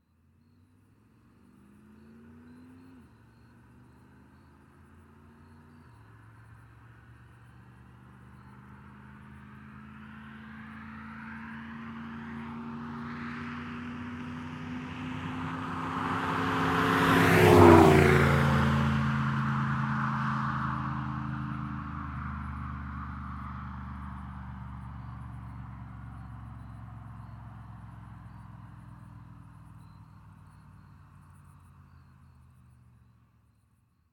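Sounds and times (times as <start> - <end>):
1982 Z28 passing by fast: 8.6 - 33.1.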